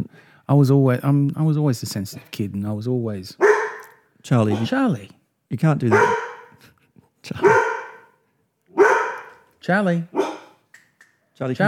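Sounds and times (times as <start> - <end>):
speech: 0.5 - 3.6, 4.2 - 7.6, 9.6 - 10.3, 11.4 - 11.6
studio dog barking: 3.4 - 4.9, 5.8 - 6.6, 7.4 - 9.5, 10.1 - 10.6.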